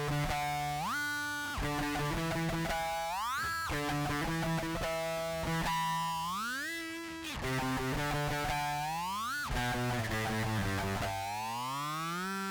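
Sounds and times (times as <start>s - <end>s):
distorted guitar with whammy effect: 0.0s - 12.4s.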